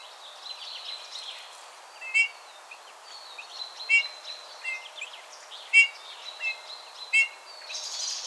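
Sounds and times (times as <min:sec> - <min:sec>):
Eurasian bullfinch Pyrrhula pyrrhula piping calls: 0:02.0 - 0:02.3, 0:03.9 - 0:04.8, 0:05.7 - 0:05.9, 0:07.1 - 0:07.4.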